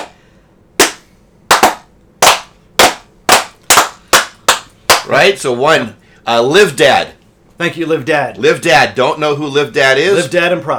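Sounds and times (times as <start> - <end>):
hand claps: 0.0 - 0.2, 0.8 - 5.1
speech: 5.1 - 10.7.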